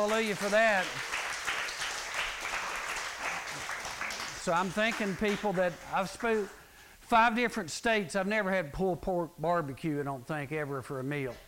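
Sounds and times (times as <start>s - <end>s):
speech: 0.0s - 1.2s, 4.4s - 11.4s
applause for the cooks at a junior high session: 0.0s - 6.7s.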